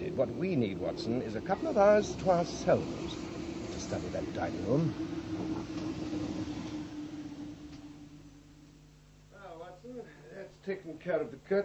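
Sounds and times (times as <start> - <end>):
Chislehurst train arriving at station: 0.0 - 8.4
speech: 0.2 - 3.2, 3.9 - 6.2, 10.6 - 11.6.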